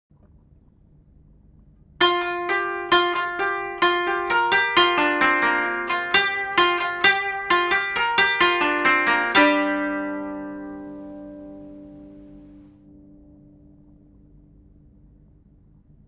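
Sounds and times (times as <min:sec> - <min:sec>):
koto: 0:02.0 - 0:13.4.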